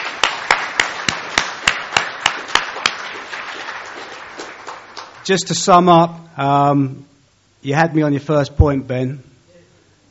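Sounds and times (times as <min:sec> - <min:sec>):
sharp single clap: 0:00.0 - 0:03.1
audience applause: 0:00.0 - 0:05.5
speech: 0:05.3 - 0:09.3.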